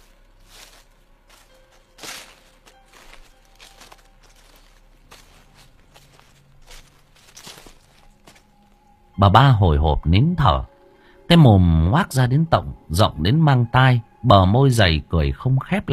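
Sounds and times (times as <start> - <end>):
soft footsteps behind the house: 0.0 - 8.9
speech: 9.2 - 10.7, 11.3 - 15.9.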